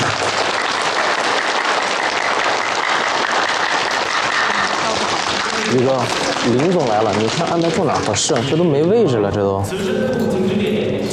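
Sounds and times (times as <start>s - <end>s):
wedding guests applauding: 0.0s - 8.7s
speech: 5.7s - 11.1s.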